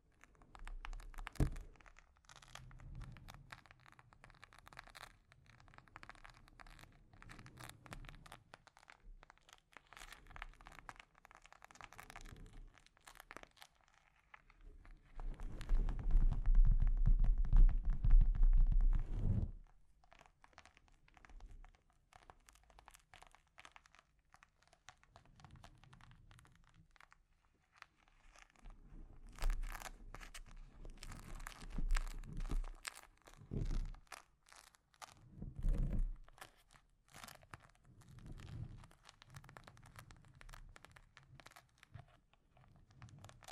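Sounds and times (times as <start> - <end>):
scratching and tapping on a microphone: 0.0 - 43.5
low rumbling scrape: 18.8 - 19.6.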